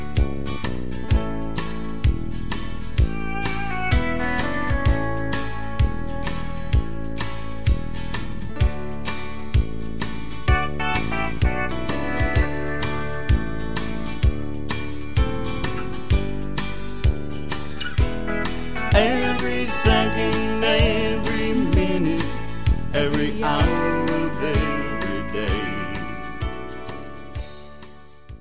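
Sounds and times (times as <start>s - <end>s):
instrumental music: 0.0s - 28.4s
backing vocals: 18.8s - 26.2s.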